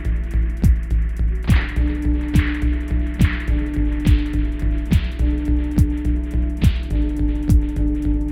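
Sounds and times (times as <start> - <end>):
zarb drum beat for an MC: 0.0 - 8.3.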